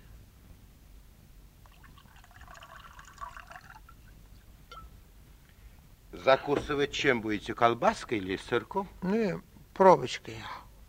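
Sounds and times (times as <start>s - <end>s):
hiss: 0.0s - 10.8s
drink poured into a small shot glass: 1.6s - 4.1s
speech: 6.2s - 10.6s.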